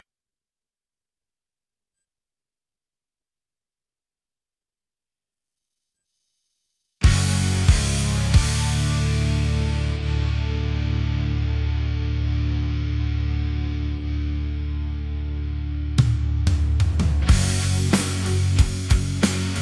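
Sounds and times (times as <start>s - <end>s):
instrumental music: 7.0s - 19.5s.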